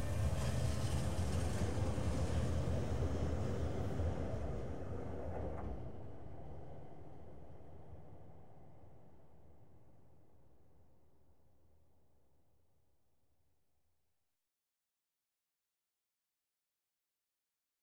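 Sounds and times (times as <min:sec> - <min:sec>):
light railway train arriving: 0:00.0 - 0:09.0.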